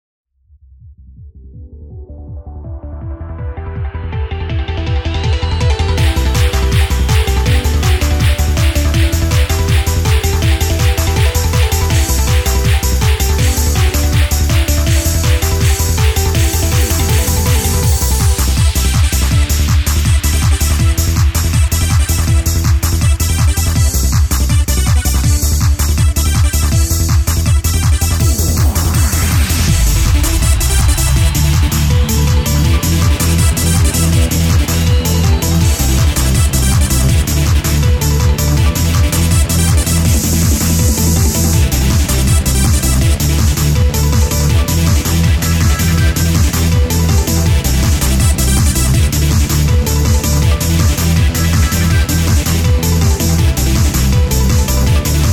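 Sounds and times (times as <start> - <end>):
disco dance music: 2.3 - 55.3.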